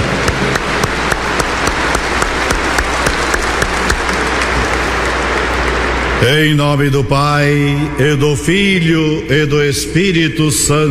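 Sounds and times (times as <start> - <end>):
warm round of applause from a crowd: 0.0 - 6.5
speech: 6.2 - 10.9.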